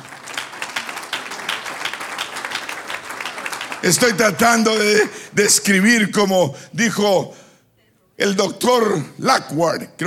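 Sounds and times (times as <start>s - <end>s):
crowd applause: 0.0s - 5.3s
speech: 3.8s - 7.4s, 8.2s - 10.0s.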